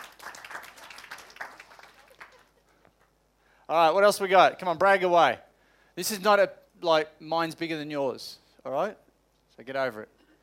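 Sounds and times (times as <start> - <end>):
golf clap: 0.0 - 3.0
speech: 3.7 - 9.0, 9.6 - 10.2.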